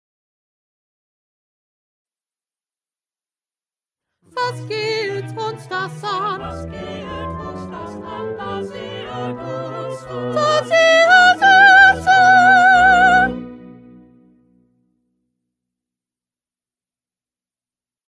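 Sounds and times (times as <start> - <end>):
second soprano singing: 4.3 - 14.0.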